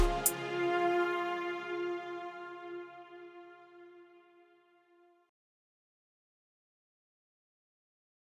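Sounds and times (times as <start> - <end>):
lazy chill music: 0.0 - 1.8.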